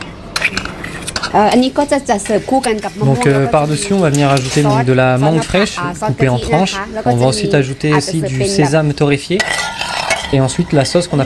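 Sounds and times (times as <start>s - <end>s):
two large metal spoons shaping a rice quenelle: 0.4s - 5.8s, 9.3s - 11.2s
speech: 1.3s - 9.6s, 10.3s - 11.2s.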